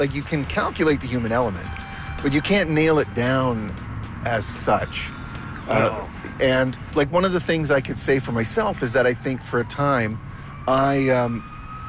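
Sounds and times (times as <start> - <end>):
speech: 0.0 - 11.5
emergency vehicle siren passing an intersection in Whitby, Ontario: 0.0 - 11.8.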